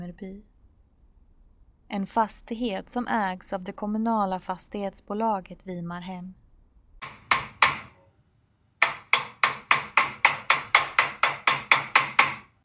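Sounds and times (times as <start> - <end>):
speech: 0.1 - 0.6, 1.9 - 6.4
hammering during carpentry at night: 7.0 - 8.1, 8.8 - 12.6.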